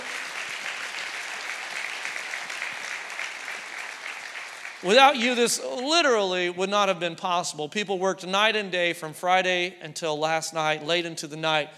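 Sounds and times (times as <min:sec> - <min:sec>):
audience applause: 0:00.0 - 0:05.4
speech: 0:04.8 - 0:11.7.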